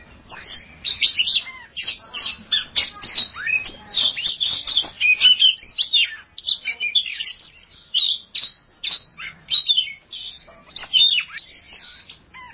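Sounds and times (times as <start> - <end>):
Oriental magpie-robin song: 0.3 - 12.5.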